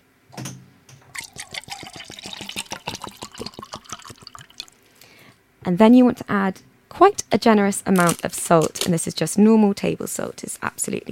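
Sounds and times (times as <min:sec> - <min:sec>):
water being poured into a cup: 0:01.1 - 0:04.8
speech: 0:05.7 - 0:11.0.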